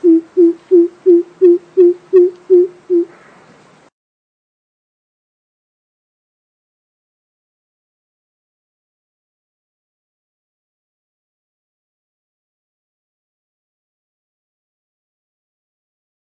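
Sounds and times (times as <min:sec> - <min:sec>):
coucal giving deep hollow hoots: 0:00.0 - 0:03.2.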